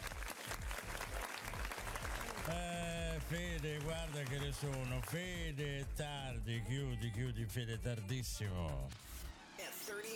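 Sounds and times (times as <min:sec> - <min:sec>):
applause: 0:00.0 - 0:06.1
speech: 0:02.5 - 0:09.0, 0:09.9 - 0:10.1.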